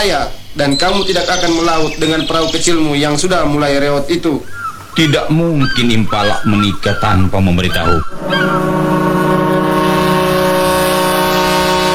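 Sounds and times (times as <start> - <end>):
speech: 0.0 - 8.7
ship approaching a dock: 8.1 - 11.9.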